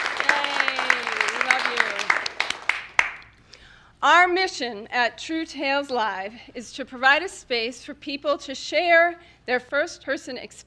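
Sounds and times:
studio audience clapping at a Portsmouth, New Hampshire community television storytelling program: 0.0 - 3.4
speech: 4.0 - 10.6.

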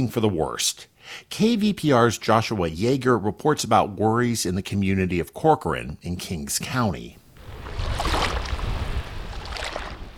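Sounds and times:
speech: 0.0 - 7.2
floodwater lapping and sloshing: 7.4 - 10.1.

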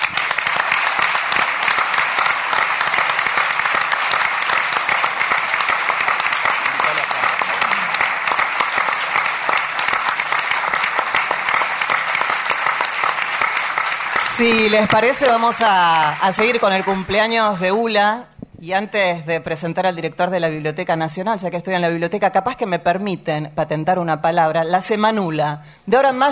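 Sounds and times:
crowd applauding: 0.0 - 17.8
speech: 14.4 - 26.3.

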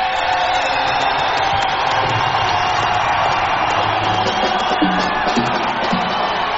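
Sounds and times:
audience cheering and clapping for their villages at a song performance: 0.0 - 6.5.

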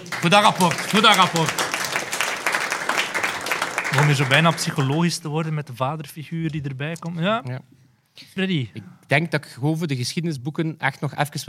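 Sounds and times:
applause: 0.0 - 5.5
speech: 0.2 - 1.6, 3.9 - 11.4.

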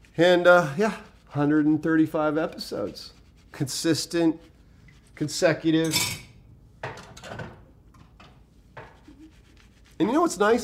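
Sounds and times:
speech: 0.2 - 4.5, 5.2 - 6.2, 10.0 - 10.6
clinking plates while washing dishes: 5.8 - 7.5.

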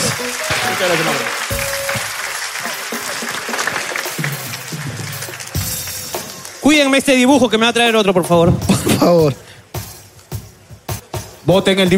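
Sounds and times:
audience applause: 0.0 - 6.6
speech: 0.3 - 1.7, 6.7 - 9.5, 11.5 - 11.9.

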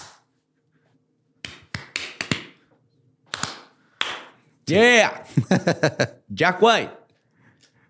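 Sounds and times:
off-rhythm hand clapping: 1.4 - 2.6, 3.3 - 4.4
speech: 4.7 - 7.0
laughter: 5.3 - 6.2.

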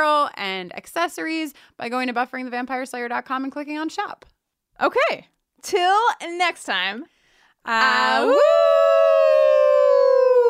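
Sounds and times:
speech: 0.0 - 8.9
voice imitating a wolf howl: 7.8 - 10.4.

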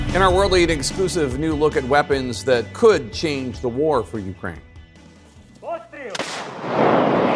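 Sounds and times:
speech: 0.1 - 4.7
M777 howitzer firing: 6.2 - 7.3.

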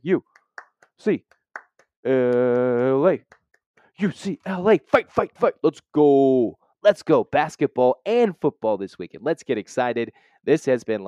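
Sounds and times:
speech: 0.0 - 0.3, 1.0 - 1.4, 2.0 - 3.4, 4.0 - 11.0
rhythmic hand clapping: 0.2 - 4.6.

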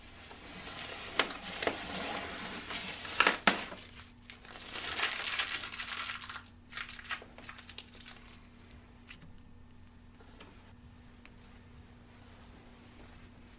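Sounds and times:
tape being worked into fibers and pulled off: 0.2 - 9.5.

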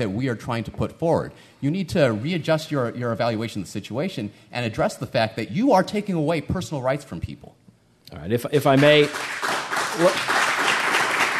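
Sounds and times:
speech: 0.0 - 9.4, 10.0 - 10.4
audience applause during a panel question session: 8.8 - 11.3.

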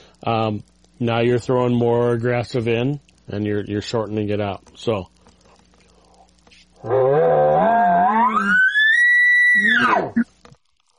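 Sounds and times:
speech: 0.2 - 5.2, 6.8 - 7.4
person imitating bull elk advertising bugle: 6.8 - 10.3.

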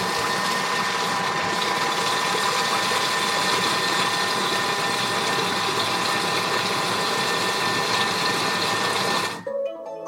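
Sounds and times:
kitchen robot whirring while mixing filling: 0.0 - 9.5.

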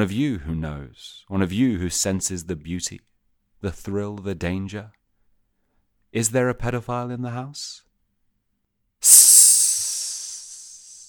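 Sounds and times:
speech: 0.0 - 5.0, 6.1 - 7.8, 9.0 - 9.6
loud sharp hiss: 9.0 - 11.0.

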